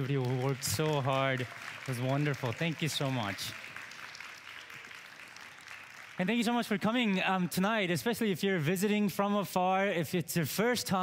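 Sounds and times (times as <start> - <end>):
speech: 0.0 - 3.7, 6.2 - 11.0
audience applause for the choir: 0.0 - 6.9.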